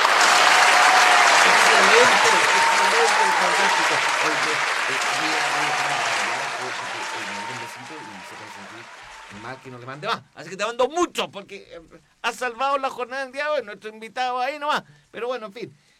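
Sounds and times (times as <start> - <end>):
audience applause: 0.0 - 10.0
speech: 3.0 - 15.8.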